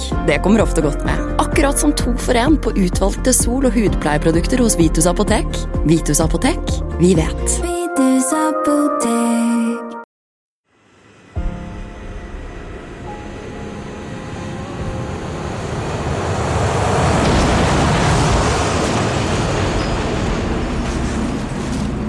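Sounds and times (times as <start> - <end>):
speech: 0.3 - 9.6
collision of two airplanes on a runway in fog at Los Rodeos airport: 11.0 - 22.0.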